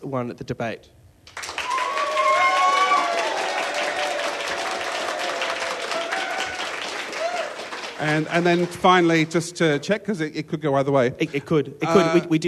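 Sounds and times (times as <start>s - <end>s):
speech: 0.0s - 1.4s, 8.0s - 12.4s
audience round of applause: 1.3s - 9.3s.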